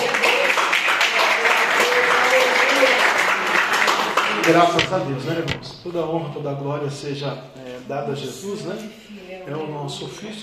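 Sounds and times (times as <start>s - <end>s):
audience clapping: 0.0s - 5.5s
speech: 4.5s - 10.4s.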